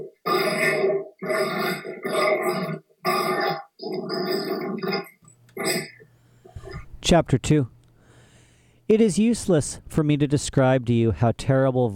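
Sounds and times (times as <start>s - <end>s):
dogs grunting: 0.0s - 6.9s
speech: 7.1s - 7.8s, 8.9s - 11.9s.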